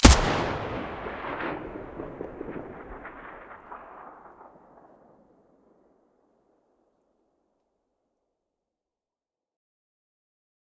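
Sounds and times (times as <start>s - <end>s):
HK416 rifle muzzle blast: 0.0s - 5.2s.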